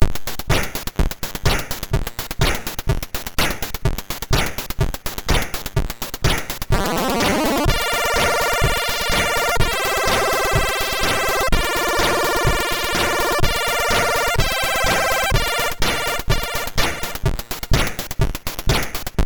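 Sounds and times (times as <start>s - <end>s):
house music on MOS6581R2 SID chip: 0.0s - 19.2s.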